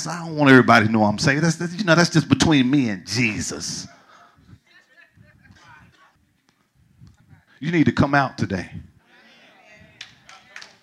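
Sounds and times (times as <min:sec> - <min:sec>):
speech: 0:00.0 - 0:04.0, 0:07.6 - 0:08.9
few people clapping: 0:09.9 - 0:10.8.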